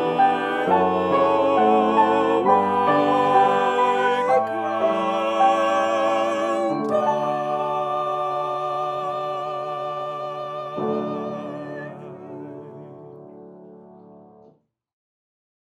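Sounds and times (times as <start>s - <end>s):
piano accompaniment for an SAB arrangement: 0.0s - 14.6s.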